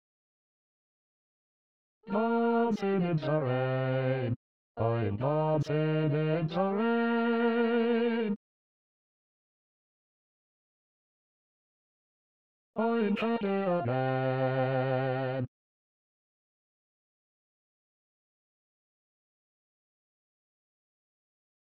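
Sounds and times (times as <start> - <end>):
bass voice singing in SATB choir in E flat: 2.1 - 8.3, 12.8 - 15.5.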